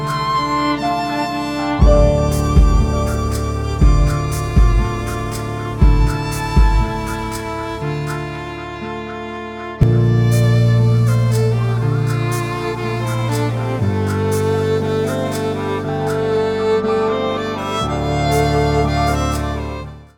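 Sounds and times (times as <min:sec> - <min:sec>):
piano: 0:00.0 - 0:20.1
violin: 0:00.0 - 0:20.1.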